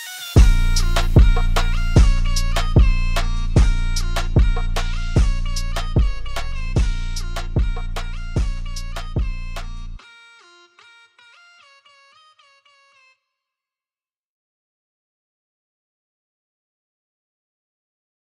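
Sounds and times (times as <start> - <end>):
moombahton club banger beat: 0.0 - 11.8.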